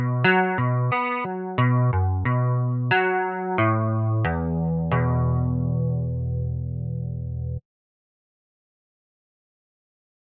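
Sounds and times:
raw guitar playing: 0:00.0 - 0:07.6.

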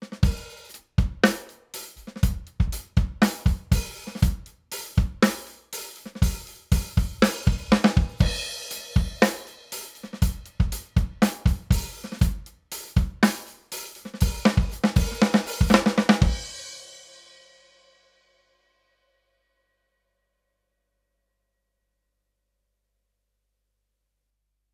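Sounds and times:
drums with glue compression: 0:00.0 - 0:16.6.

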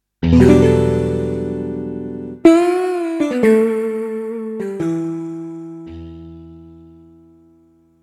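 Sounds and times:
synth strings: 0:00.2 - 0:05.2.

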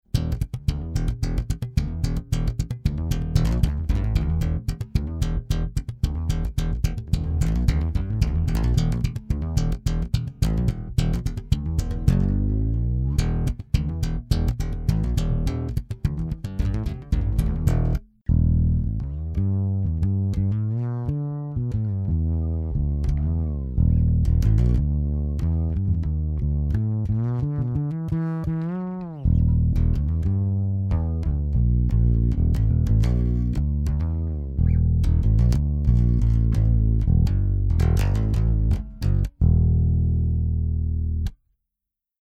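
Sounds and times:
Godin fretless bass guitar: 0:00.0 - 0:41.4.

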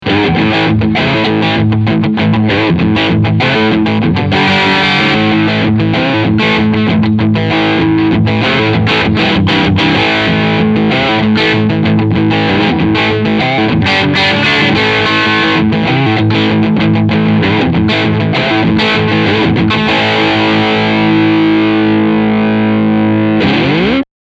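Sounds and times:
electric guitar bridge pickup overdrive: 0:00.0 - 0:24.0.

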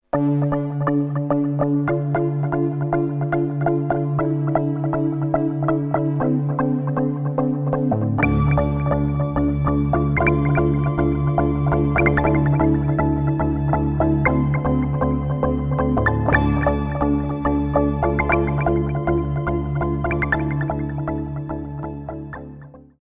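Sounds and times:
Korg Trident synth bass: 0:00.2 - 0:23.0.

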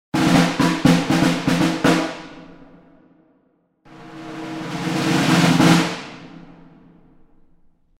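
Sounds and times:
snare field drum: 0:00.2 - 0:03.0, 0:03.9 - 0:07.3.

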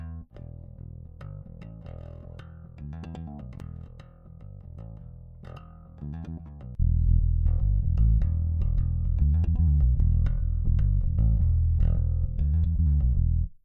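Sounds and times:
Ampeg 4001 amplifier tone with low cut and low boost: 0:06.8 - 0:13.5.

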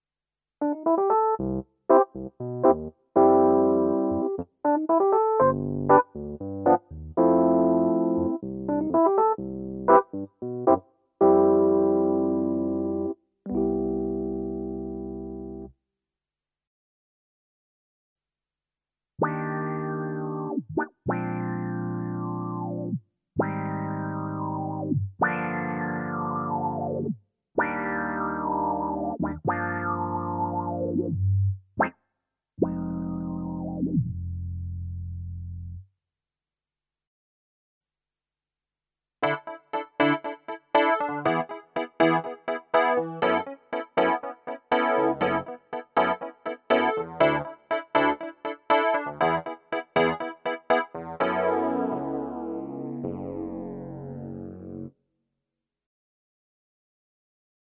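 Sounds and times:
electric piano: 0:00.6 - 0:15.7, 0:19.2 - 0:31.2, 0:32.6 - 0:34.0, 0:39.2 - 0:54.9.

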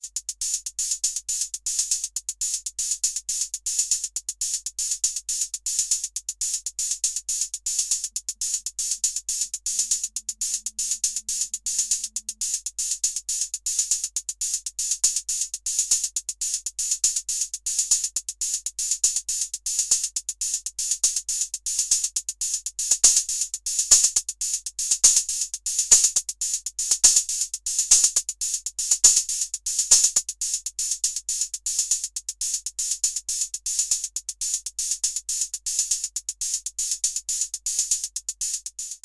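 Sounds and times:
Roland TR-06 Boutique TR-606 closed hi-hat with distortion: 0:00.0 - 0:39.0.

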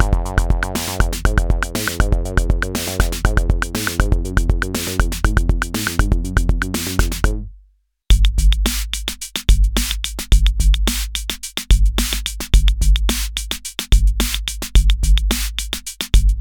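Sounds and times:
Akai Rhythm Wolf drum machine beats: 0:00.0 - 0:07.4, 0:08.1 - 0:16.4
Akai Rhythm Wolf bass: 0:00.0 - 0:07.5.

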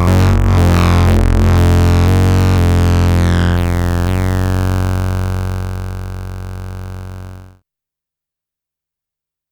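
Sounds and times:
AnamonoXmini sub oscillator through filter with various settings: 0:00.0 - 0:07.5.

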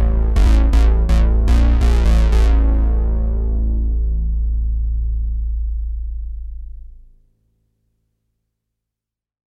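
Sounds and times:
SH-4d Model SH 101 synth bass: 0:00.0 - 0:07.3.

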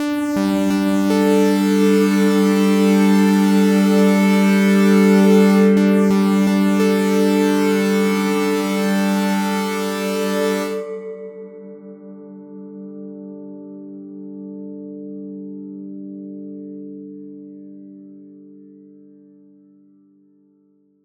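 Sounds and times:
gong synth pad with drive: 0:00.0 - 0:11.8.

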